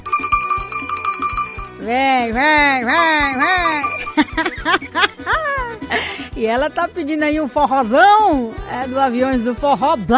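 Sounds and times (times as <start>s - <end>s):
bell ringing: 0.0s - 4.9s
speech: 1.8s - 10.1s
laughter: 3.9s - 6.2s.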